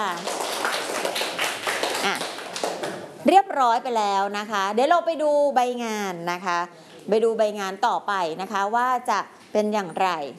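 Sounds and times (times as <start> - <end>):
classroom clapping: 0.0 - 3.2
speech: 3.3 - 10.3.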